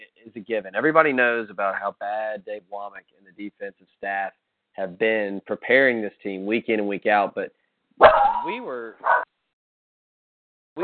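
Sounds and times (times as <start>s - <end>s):
speech: 0.3s - 9.3s
pet dog Cooper barking: 8.0s - 9.3s.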